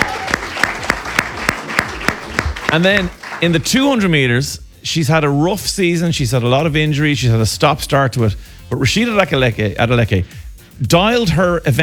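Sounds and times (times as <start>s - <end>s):
crowd noise: 0.0s - 4.0s
round of applause: 0.0s - 4.1s
speech: 2.7s - 11.8s.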